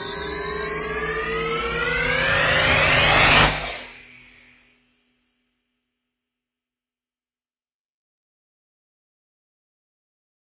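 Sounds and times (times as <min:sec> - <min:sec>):
hyperbolic riser sweeps: 0:00.0 - 0:04.0.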